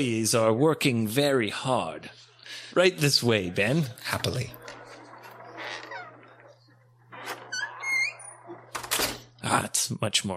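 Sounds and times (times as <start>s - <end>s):
speech: 0.0s - 4.6s, 9.5s - 10.3s
squeaky door creaking open: 4.6s - 9.4s.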